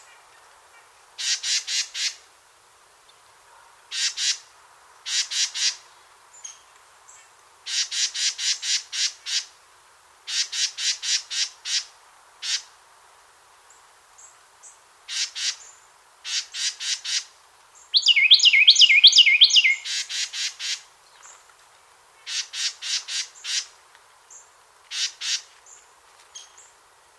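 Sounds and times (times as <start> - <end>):
Carolina wren Thryothorus ludovicianus rolling song phrases: 17.8 - 20.8.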